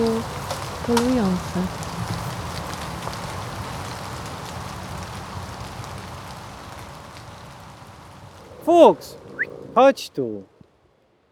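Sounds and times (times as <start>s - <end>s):
rain falling: 0.0s - 11.2s
speech: 0.9s - 1.8s, 8.8s - 9.2s, 9.8s - 10.5s.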